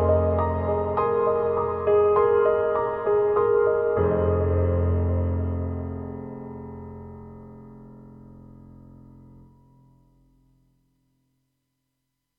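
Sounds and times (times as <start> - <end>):
cinematic piano on a KORG M3 synthesizer: 0.0 - 10.7.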